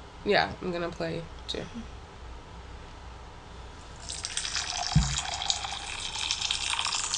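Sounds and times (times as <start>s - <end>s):
speech: 0.2s - 2.0s
cold water pouring in a hot-or-cold guessing game: 4.0s - 7.1s
low thump: 4.9s - 5.2s.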